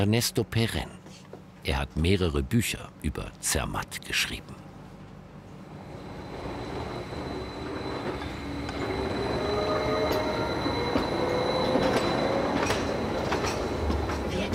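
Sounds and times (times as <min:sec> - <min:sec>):
speech: 0:00.0 - 0:01.0, 0:01.6 - 0:04.6
mountain railway train running on tracks: 0:05.2 - 0:14.5.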